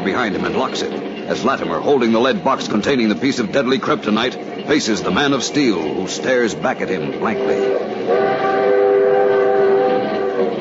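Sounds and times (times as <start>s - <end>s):
passenger train running: 0.0s - 10.5s
speech: 0.1s - 8.2s
sustained tonal hums like a drawn-out horn note: 7.2s - 10.5s.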